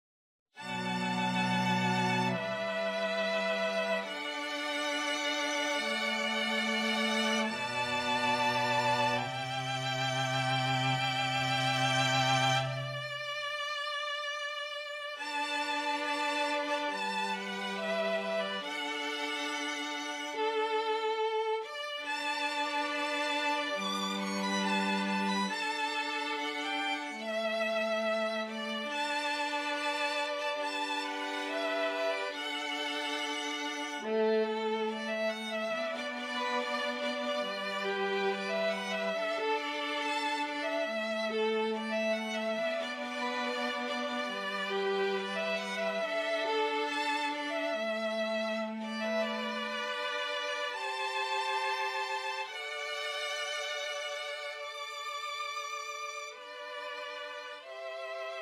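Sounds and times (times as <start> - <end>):
string quartet: 0.6 - 58.3.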